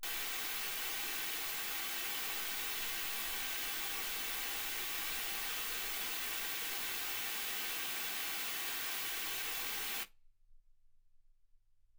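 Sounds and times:
white gaussian noise at 48kHz: 0.0 - 10.1.

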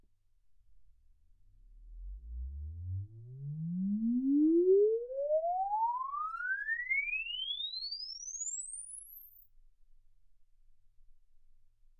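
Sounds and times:
exponential sine sweep from 10 Hz to 24 kHz: 1.9 - 9.7.

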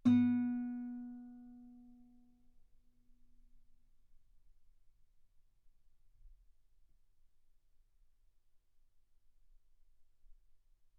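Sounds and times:
guitar note B3: 0.0 - 1.8.

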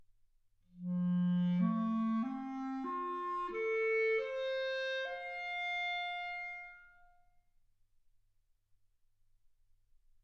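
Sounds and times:
clarinet: 0.8 - 7.2.

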